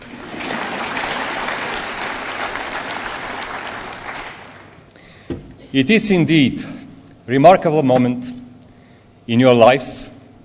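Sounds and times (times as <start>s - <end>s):
crowd applauding: 0.0s - 4.9s
speech: 5.7s - 8.4s, 9.3s - 10.2s.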